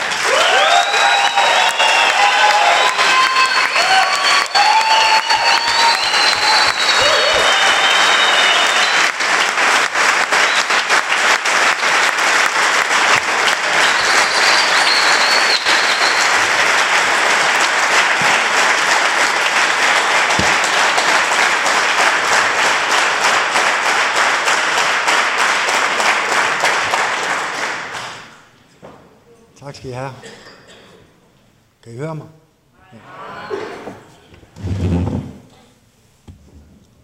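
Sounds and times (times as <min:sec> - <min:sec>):
audience applause welcoming a guest at an opening game at Sokna 12: 0:00.0 - 0:28.4.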